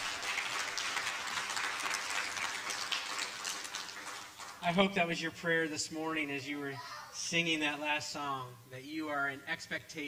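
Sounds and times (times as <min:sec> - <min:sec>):
audience applause: 0:00.0 - 0:04.6
speech: 0:04.6 - 0:10.0.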